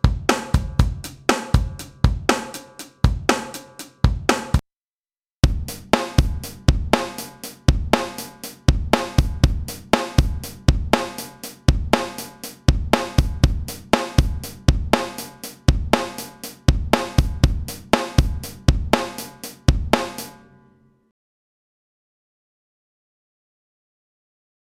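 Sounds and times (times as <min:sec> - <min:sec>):
drums: 0:00.0 - 0:04.6, 0:05.4 - 0:20.5.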